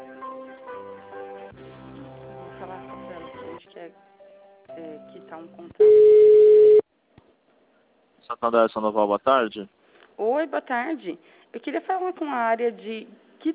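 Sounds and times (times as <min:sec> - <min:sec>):
speech: 0:03.8 - 0:04.0, 0:04.8 - 0:06.2, 0:08.3 - 0:13.5
loud steady mid-pitched telephone beep: 0:05.8 - 0:06.8
melodic electronic hold tones on a bank's credit line: 0:05.8 - 0:06.8.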